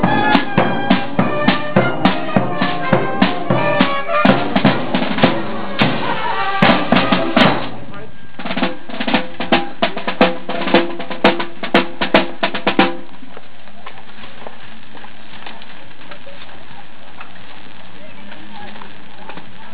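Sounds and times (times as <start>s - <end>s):
band playing in Strinda: 0.0s - 13.1s.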